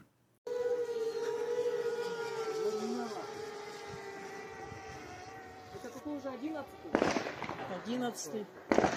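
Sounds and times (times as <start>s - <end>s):
wavering siren: 0.5s - 7.6s
loud explosion: 6.9s - 8.0s.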